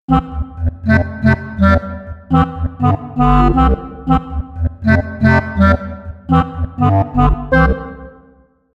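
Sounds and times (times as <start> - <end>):
clarinet: 0.1 - 8.4.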